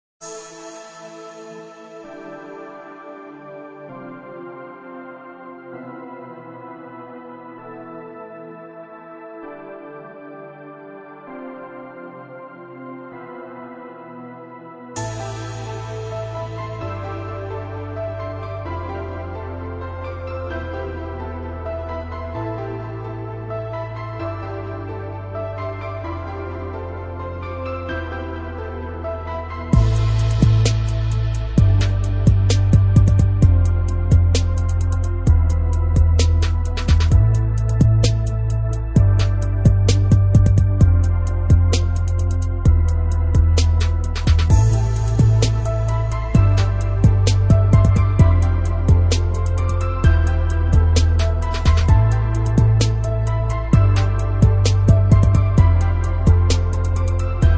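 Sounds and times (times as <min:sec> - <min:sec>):
trap beat: 0:29.7 - 0:57.5.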